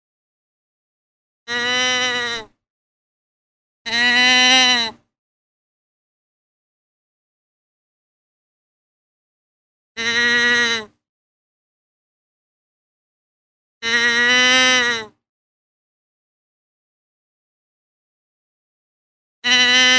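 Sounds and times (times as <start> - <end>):
deer bleating: 1.5 - 2.5, 3.9 - 5.0, 10.0 - 11.0, 13.8 - 15.2, 19.4 - 19.9.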